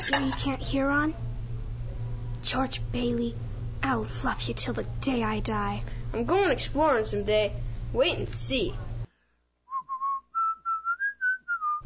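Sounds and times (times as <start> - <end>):
speech: 0.1 - 1.3, 2.4 - 8.8
person whistling a tune: 9.7 - 11.8.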